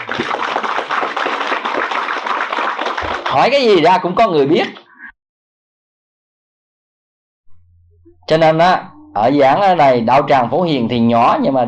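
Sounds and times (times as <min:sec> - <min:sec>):
audience applause: 0:00.0 - 0:03.9
speech: 0:03.3 - 0:04.8, 0:08.3 - 0:11.6.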